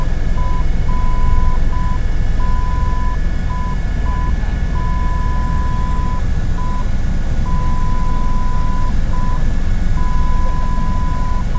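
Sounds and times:
helicopter in flight: 0.0 - 11.5.

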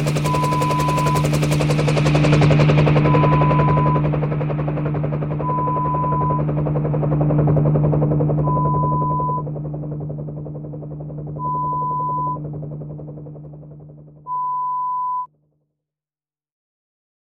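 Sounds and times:
helicopter: 0.0 - 14.4.

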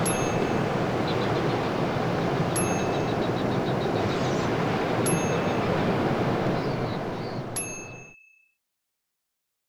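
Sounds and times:
seagulls calling: 0.0 - 7.6
waves crashing in the surf: 0.0 - 7.6.

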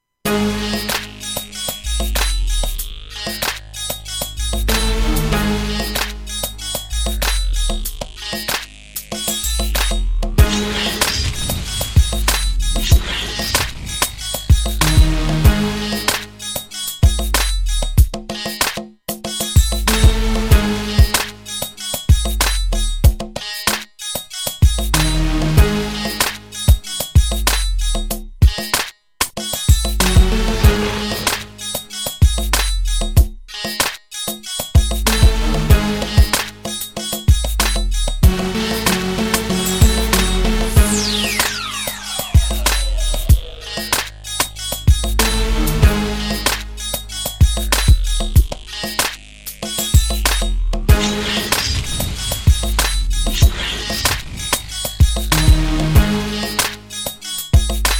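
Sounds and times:
music beat: 0.3 - 57.9.

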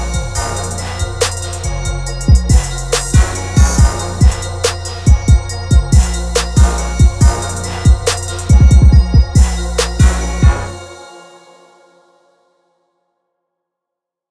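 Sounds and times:
quick trap beat: 0.0 - 11.0.

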